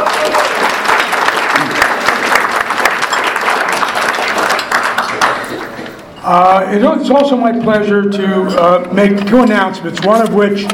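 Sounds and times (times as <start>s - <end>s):
audience applause: 0.0s - 6.0s
speech: 6.3s - 10.7s.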